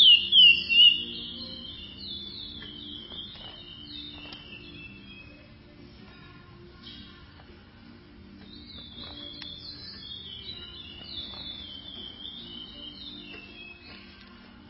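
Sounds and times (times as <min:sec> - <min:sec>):
chestnut-bellied seed finch song of rapid high whistles: 0:00.0 - 0:05.6, 0:08.4 - 0:14.2.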